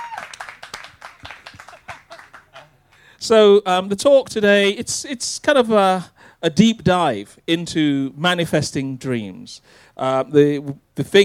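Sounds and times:
audience applause: 0.0 - 2.8
speech: 3.2 - 11.2.

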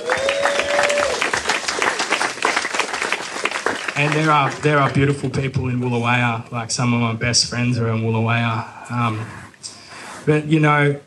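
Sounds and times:
audience applause: 0.0 - 5.2
speech: 4.0 - 9.4, 10.3 - 11.0.

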